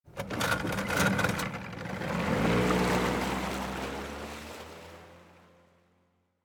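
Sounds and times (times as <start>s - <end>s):
boat engine starting: 0.0s - 5.1s.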